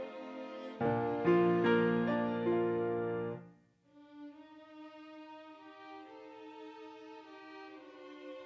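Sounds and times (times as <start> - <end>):
piano: 0.1 - 3.6.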